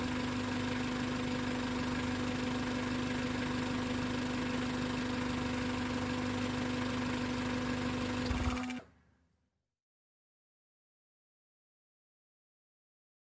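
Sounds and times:
small compact car engine idling then switched off: 0:00.0 - 0:08.8.

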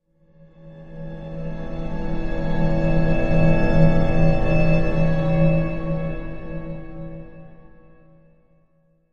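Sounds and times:
eerie slow orchestral music: 0:00.6 - 0:08.2.

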